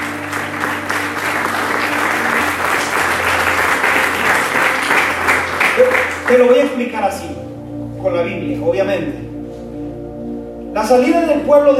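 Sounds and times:
audience applause: 0:00.0 - 0:06.6
speech: 0:06.3 - 0:07.4, 0:08.0 - 0:09.2, 0:10.8 - 0:11.7.

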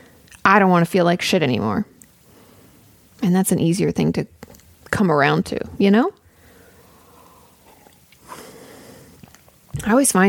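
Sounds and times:
speech: 0:00.4 - 0:01.9, 0:03.2 - 0:06.2, 0:09.8 - 0:10.2
heavy breathing into a microphone: 0:06.3 - 0:09.3.

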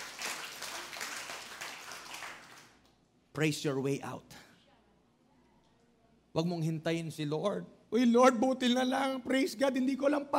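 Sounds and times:
church congregation clapping in praise during a worship service: 0:00.0 - 0:02.9
speech: 0:03.4 - 0:04.4, 0:06.4 - 0:10.3.

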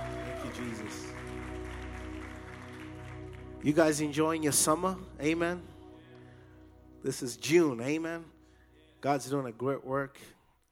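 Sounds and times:
audience clapping: 0:00.0 - 0:04.8
speech: 0:00.6 - 0:01.3, 0:03.6 - 0:05.7, 0:07.0 - 0:08.4, 0:09.0 - 0:10.4.

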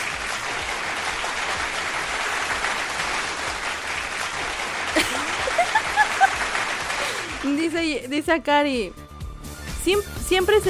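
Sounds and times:
applause sound effect: 0:00.0 - 0:08.0
laughter: 0:04.8 - 0:07.4
speech: 0:07.4 - 0:09.0, 0:09.8 - 0:10.6.

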